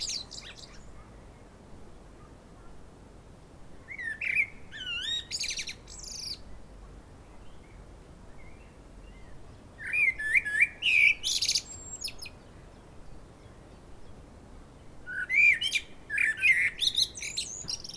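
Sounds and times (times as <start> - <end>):
common blackbird Turdus merula singing: 0.0 - 1.5, 3.8 - 6.5, 7.2 - 14.2, 15.0 - 17.9.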